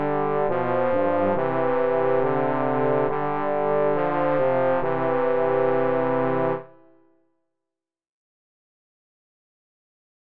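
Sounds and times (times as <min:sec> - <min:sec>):
two trombones playing a duo: 0:00.0 - 0:06.7.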